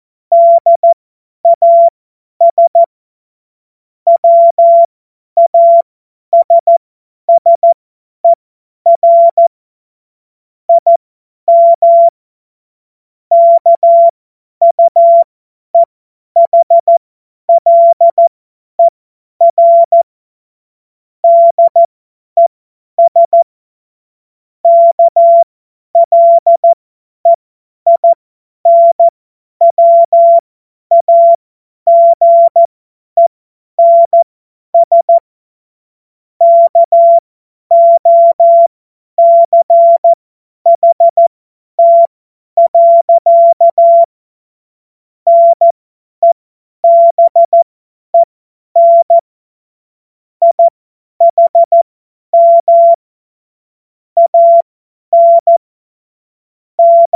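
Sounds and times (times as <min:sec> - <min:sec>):
CW Morse code beeps: 0:00.3 - 0:02.9, 0:04.1 - 0:07.8, 0:08.9 - 0:09.5, 0:10.7 - 0:12.1, 0:13.3 - 0:20.1, 0:21.2 - 0:21.9, 0:23.0 - 0:23.4, 0:24.6 - 0:35.2, 0:36.4 - 0:44.1, 0:45.3 - 0:49.2, 0:50.4 - 0:53.0, 0:54.2 - 0:55.6, 0:56.8 - 0:57.1.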